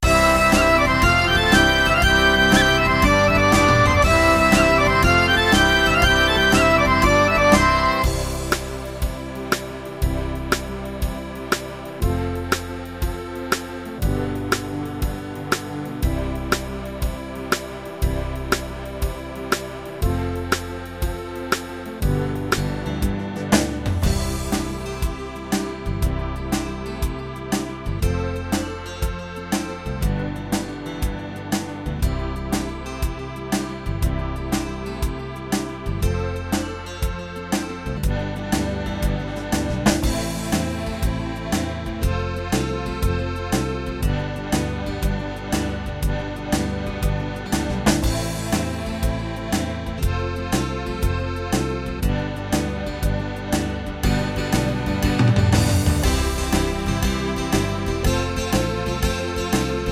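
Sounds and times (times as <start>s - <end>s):
Christmas Celtic rhythms: 0.0s - 59.9s.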